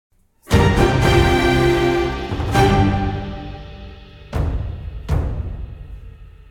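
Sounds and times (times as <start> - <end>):
battle music: 0.5 - 5.5.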